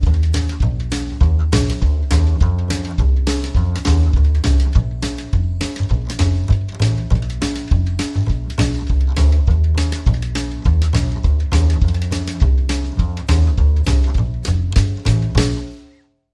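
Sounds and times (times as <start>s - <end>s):
down home bass line: 0.0s - 15.9s.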